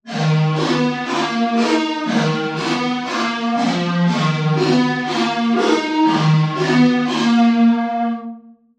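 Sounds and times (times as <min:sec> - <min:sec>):
lead melody: 0:00.1 - 0:08.3.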